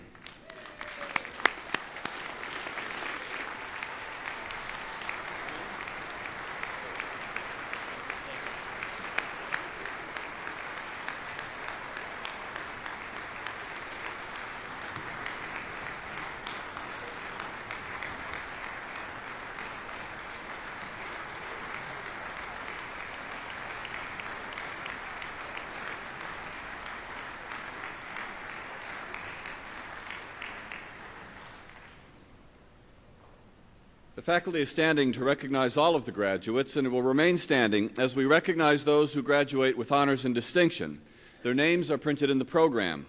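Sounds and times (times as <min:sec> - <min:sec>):
round of applause for graduates: 0:00.0 - 0:32.1
speech: 0:34.2 - 0:43.0.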